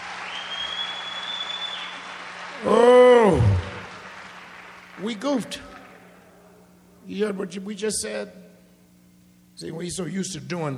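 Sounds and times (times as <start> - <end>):
audience applause: 0.0 - 6.0
speech: 5.0 - 5.7, 7.1 - 8.4, 9.6 - 10.7.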